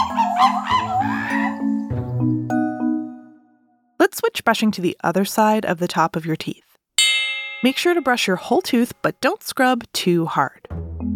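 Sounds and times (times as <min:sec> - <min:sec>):
monkeys calling: 0:00.0 - 0:02.0
low musical tones: 0:01.4 - 0:03.5
speech: 0:04.3 - 0:06.7, 0:07.6 - 0:11.1.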